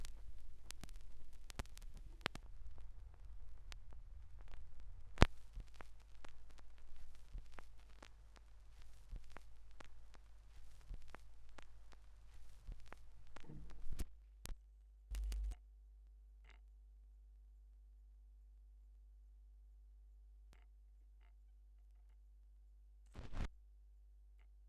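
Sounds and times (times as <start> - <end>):
vinyl record noise: 0.0 - 15.6, 23.2 - 23.5.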